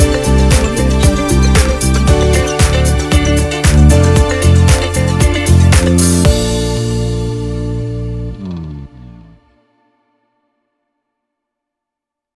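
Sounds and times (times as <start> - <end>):
fashion show: 0.0 - 7.4.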